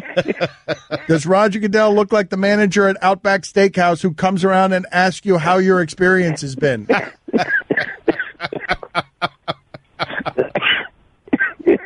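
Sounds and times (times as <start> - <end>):
laughter: 0.0 - 1.3, 8.4 - 10.6
speech: 0.2 - 8.8
person coughing: 6.9 - 8.9, 10.0 - 11.8
person clearing throat: 6.9 - 9.0, 10.0 - 11.8.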